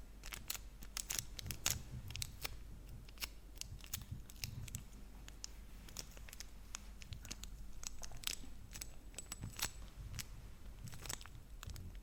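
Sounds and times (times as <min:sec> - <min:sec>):
chocolate wrappers crinkling: 0:00.2 - 0:12.0
soft chewing: 0:00.3 - 0:12.0.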